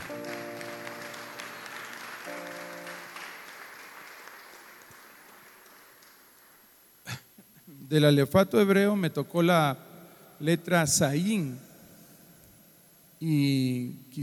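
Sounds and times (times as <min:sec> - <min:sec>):
audience applauding: 0:00.0 - 0:06.8
speech: 0:07.9 - 0:11.7, 0:13.2 - 0:14.2.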